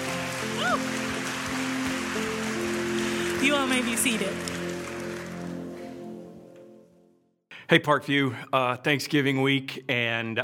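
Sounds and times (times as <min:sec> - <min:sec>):
audience hand clap of praise: 0:00.0 - 0:06.3
speech: 0:03.4 - 0:04.5, 0:07.7 - 0:10.4.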